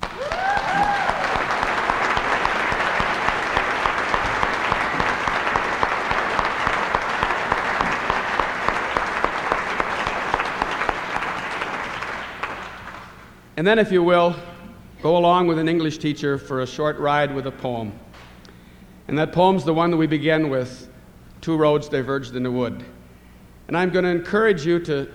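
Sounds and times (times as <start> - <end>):
audience applause: 0.0 - 13.3
speech: 13.6 - 18.0, 19.1 - 23.0, 23.7 - 25.1.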